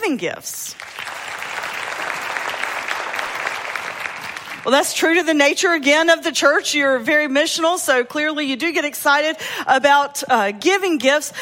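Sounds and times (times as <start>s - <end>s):
speech: 0.1s - 0.9s, 4.6s - 11.4s
audience clapping: 0.7s - 5.2s.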